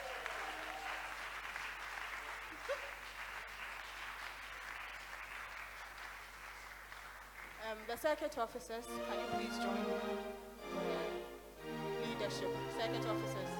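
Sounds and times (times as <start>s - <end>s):
continuous crowd applause: 0.0s - 7.8s
speech: 7.7s - 11.0s, 12.3s - 13.5s.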